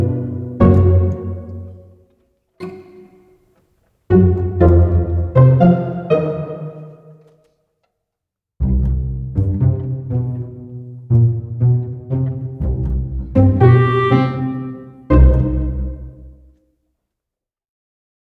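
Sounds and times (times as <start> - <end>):
pizzicato strings: 0.0 - 1.8, 2.6 - 3.4, 4.1 - 7.3, 8.6 - 16.4.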